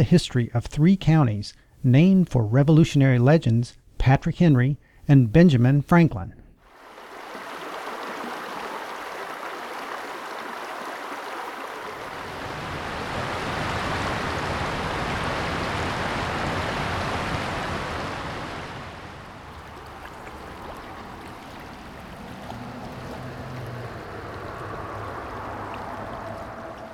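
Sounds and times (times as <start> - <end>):
speech: 0.0 - 6.4
Smith River flowing at Jacks Creek Covered Bridge, Philpott Reservoir Dam outflow: 6.7 - 26.9.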